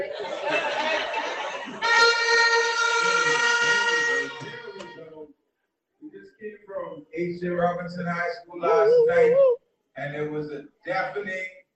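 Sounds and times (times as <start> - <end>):
laughter: 0.0 - 1.9, 8.6 - 9.6
horns blowing: 1.8 - 5.1
speech: 7.2 - 11.6.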